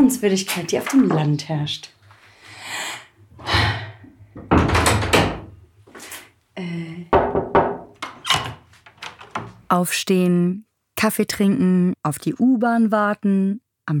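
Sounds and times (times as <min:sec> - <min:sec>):
speech: 0:00.0 - 0:02.0, 0:09.7 - 0:13.9
door opening and closing: 0:04.4 - 0:05.6, 0:07.4 - 0:09.7.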